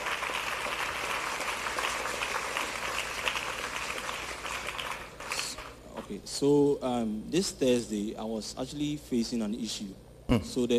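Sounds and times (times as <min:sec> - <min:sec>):
crowd clapping: 0:00.0 - 0:05.8
speech: 0:06.1 - 0:10.7.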